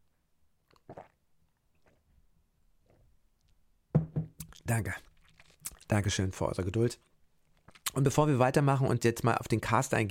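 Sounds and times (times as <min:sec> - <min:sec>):
drinking water from a glass: 0:00.7 - 0:02.2, 0:04.4 - 0:06.0
speech: 0:04.7 - 0:05.1, 0:05.9 - 0:07.1, 0:08.0 - 0:10.0.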